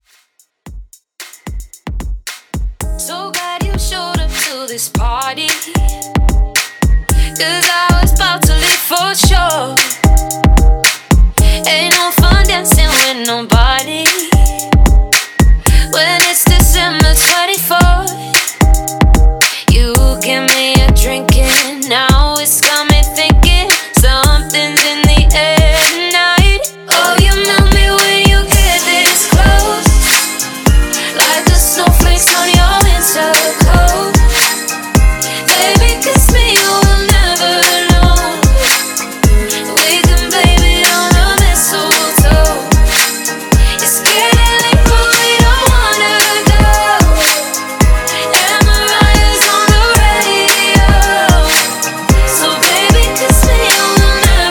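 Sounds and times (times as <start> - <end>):
Christmas music: 0.7 - 54.4.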